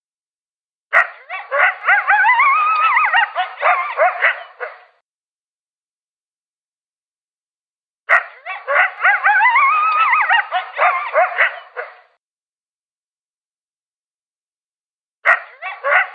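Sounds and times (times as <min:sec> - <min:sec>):
coyote yipping and howling: 0:01.0 - 0:04.9, 0:08.4 - 0:12.0, 0:15.6 - 0:16.1.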